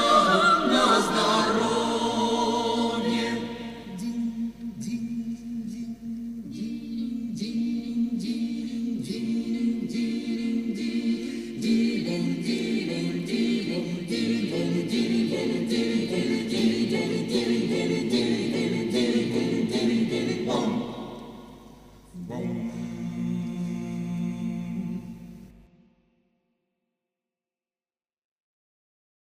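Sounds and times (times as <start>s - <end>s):
choir singing: 0.0s - 25.8s.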